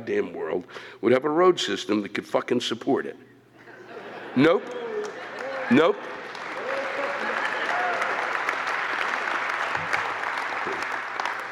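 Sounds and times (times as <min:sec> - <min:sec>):
speech: 0:00.1 - 0:03.3, 0:04.4 - 0:04.8, 0:05.7 - 0:06.2
laughter: 0:03.6 - 0:08.0
partial audience applause: 0:04.6 - 0:11.5.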